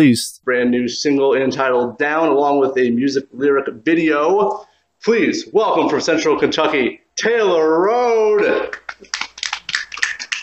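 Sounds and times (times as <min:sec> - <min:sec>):
speech: 0:00.0 - 0:09.3
golf clap, soft quiet clapping: 0:08.4 - 0:10.4.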